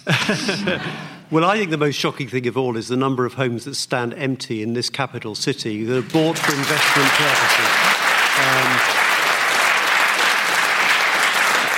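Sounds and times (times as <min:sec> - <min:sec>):
laughter: 0:00.0 - 0:01.2
speech: 0:00.1 - 0:09.0
audience clapping: 0:06.0 - 0:11.7.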